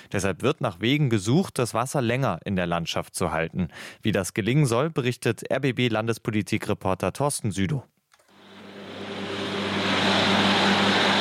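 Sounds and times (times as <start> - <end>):
speech: 0.1 - 8.0
tractor with extra wide rear tyres mowing 1 metre high grass on moor meadows: 8.4 - 11.1.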